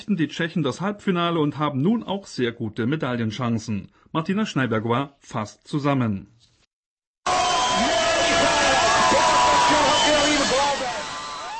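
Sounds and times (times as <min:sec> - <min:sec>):
speech: 0:00.0 - 0:06.4
fans cheering at public viewing: 0:07.2 - 0:11.5
whistles: 0:09.4 - 0:11.5.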